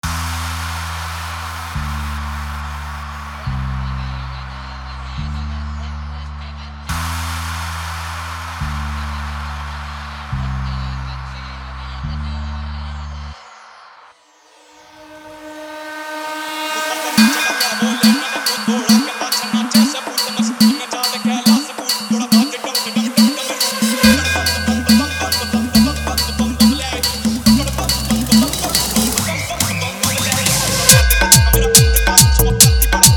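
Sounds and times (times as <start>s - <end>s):
hard bass remix music: 0.0s - 13.4s, 16.8s - 33.1s.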